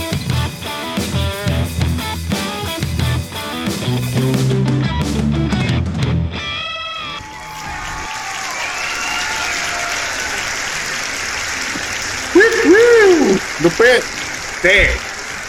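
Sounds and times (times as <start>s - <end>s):
music: 0.0s - 7.4s
audience clapping: 7.0s - 15.4s
speech: 13.8s - 15.0s.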